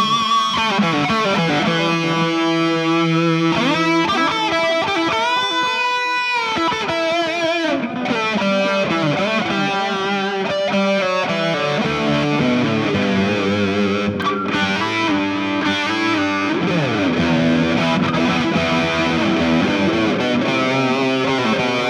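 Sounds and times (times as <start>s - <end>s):
EMG tone build electric guitar solo: 0.0s - 21.8s.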